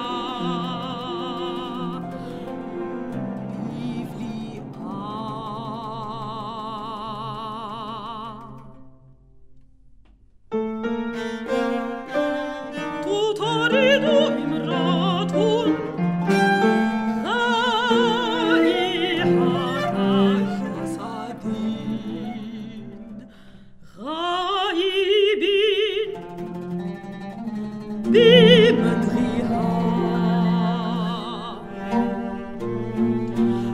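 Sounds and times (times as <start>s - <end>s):
piano: 0.0s - 7.4s, 10.5s - 23.6s, 28.0s - 33.7s
soprano singing: 0.0s - 8.9s, 10.6s - 26.6s, 28.0s - 33.7s
cello: 0.0s - 9.2s, 10.5s - 33.7s
oud: 0.0s - 9.8s, 10.8s - 33.7s.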